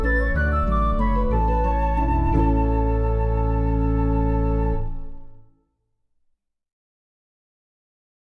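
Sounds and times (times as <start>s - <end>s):
instrumental music: 0.0s - 5.6s.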